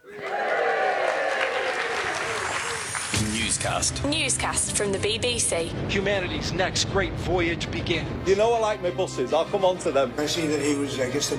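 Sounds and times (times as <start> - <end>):
live audience applauding: 0.0 - 3.7
speech: 3.2 - 11.3.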